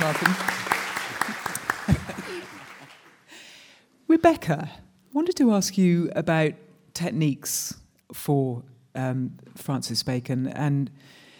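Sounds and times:
scattered applause from a small audience: 0.0s - 3.3s
laughter: 1.0s - 3.1s
speech: 4.2s - 11.2s.

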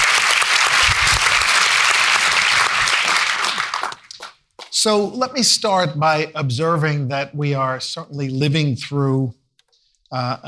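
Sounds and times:
audience applause: 0.0s - 4.7s
speech: 4.8s - 9.4s, 10.1s - 10.4s.

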